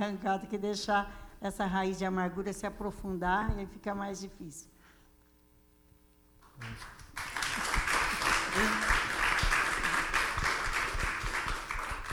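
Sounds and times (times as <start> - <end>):
speech: 0.0 - 4.7, 6.6 - 7.0
hand clapping and applause from a group at a talk on forgiveness: 6.4 - 12.1.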